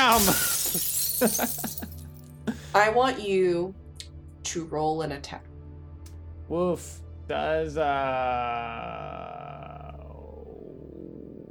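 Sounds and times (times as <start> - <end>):
mirror glass shards tinkling as they fall: 0.0 - 2.0
mirror glass shattering: 0.0 - 2.0
speech: 0.2 - 1.8, 2.8 - 3.8, 4.4 - 5.5, 6.5 - 9.6.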